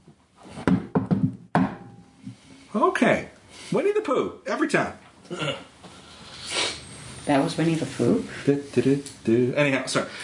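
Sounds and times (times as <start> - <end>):
patterned knocking on a wooden door: 0.7 - 1.8
speech: 2.8 - 5.7, 7.3 - 10.2.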